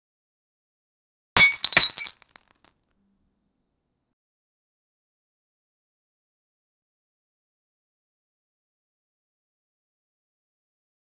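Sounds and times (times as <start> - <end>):
champagne: 1.4 - 2.5.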